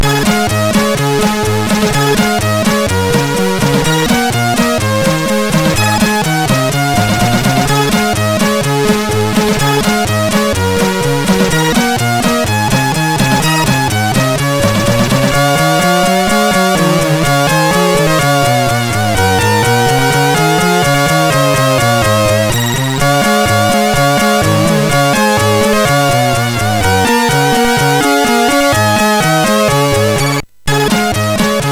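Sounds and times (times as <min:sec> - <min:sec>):
Christmas song: 0:00.1 - 0:31.6.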